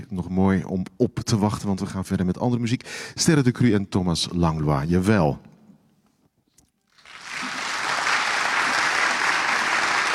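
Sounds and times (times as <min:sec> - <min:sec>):
speech: 0:00.0 - 0:05.5
audience applause: 0:07.0 - 0:10.1.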